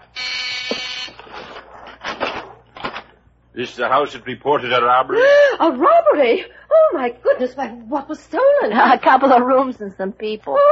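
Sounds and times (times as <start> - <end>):
electric doorbell buzzer at front door: 0.0 - 1.3
speech: 3.6 - 10.7.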